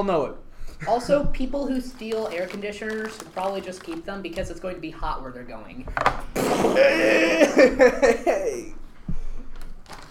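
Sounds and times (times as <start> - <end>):
speech: 0.0 - 8.8
elbow fart noise: 6.4 - 6.9
laughter: 6.7 - 8.8.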